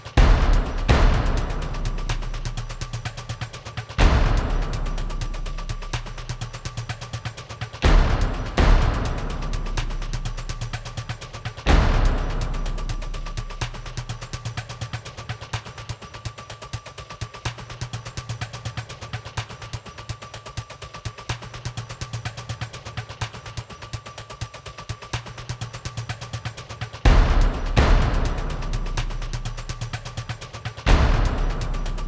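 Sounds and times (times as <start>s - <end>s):
percussive drama underscore: 0.0s - 15.8s, 25.2s - 32.0s.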